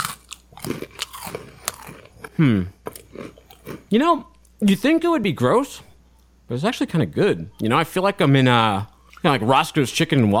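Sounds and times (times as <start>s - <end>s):
person chewing crackers with cookie-cream filling: 0.0s - 3.9s
low voiced hum: 1.5s - 10.3s
speech: 2.4s - 2.8s, 3.9s - 5.9s, 6.5s - 10.3s.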